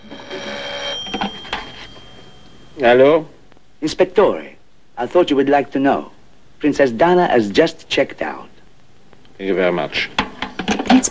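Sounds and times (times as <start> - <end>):
telephone ringing in a hotel room: 0.0 - 3.1
speech: 2.8 - 8.5, 9.4 - 11.0.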